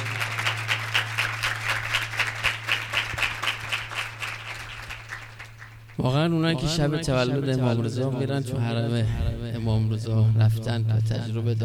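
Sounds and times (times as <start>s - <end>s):
audience clapping for a birthday: 0.0s - 6.1s
speech: 6.0s - 11.6s.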